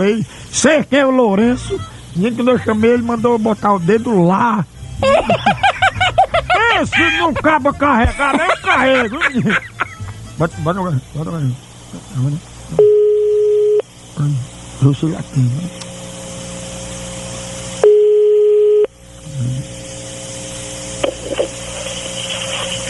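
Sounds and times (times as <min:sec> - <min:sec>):
speech: 0:00.0 - 0:05.7, 0:06.8 - 0:09.8, 0:10.4 - 0:13.0, 0:14.2 - 0:15.8
laughter: 0:05.0 - 0:10.2
telephone tone after call drops: 0:12.8 - 0:13.8, 0:17.8 - 0:18.9.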